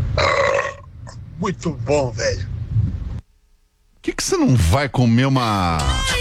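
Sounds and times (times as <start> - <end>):
burp: 0.2 - 1.2
speech: 1.4 - 2.5, 4.3 - 6.1.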